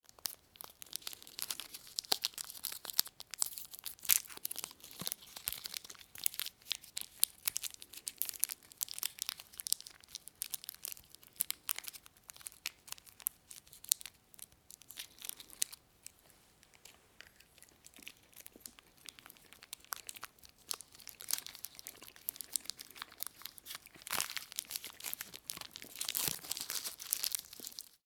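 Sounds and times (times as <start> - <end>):
rustling while unwrapping a favourite candy: 0.0 - 28.0.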